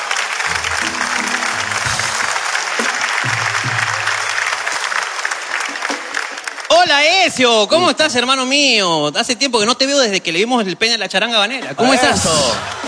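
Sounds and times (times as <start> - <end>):
crowd applauding: 0.0 - 7.8, 12.1 - 12.8
speech: 6.9 - 12.8.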